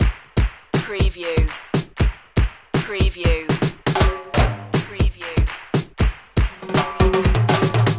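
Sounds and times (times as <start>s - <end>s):
Latin jump music loop: 0.0s - 7.9s.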